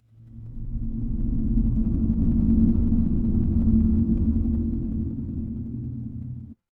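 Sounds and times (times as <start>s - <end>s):
horror drone: 0.1s - 6.6s.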